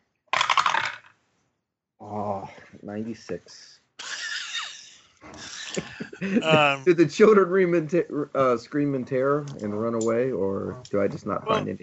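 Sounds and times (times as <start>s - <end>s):
dice rattling across a hard surface: 0.4s - 1.2s
speech: 2.8s - 3.8s, 5.3s - 11.8s
laughter: 4.0s - 7.5s, 11.4s - 11.8s.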